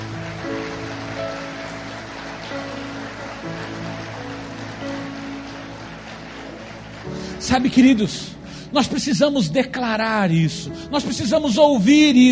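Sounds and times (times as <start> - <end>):
audience applauding: 0.0 - 9.4
speech: 7.4 - 12.3.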